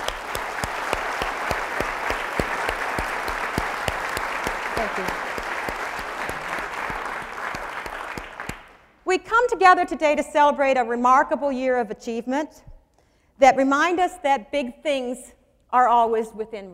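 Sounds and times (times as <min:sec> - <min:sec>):
audience applause: 0:00.0 - 0:08.8
speech: 0:04.8 - 0:05.2, 0:09.1 - 0:12.7, 0:13.4 - 0:16.7.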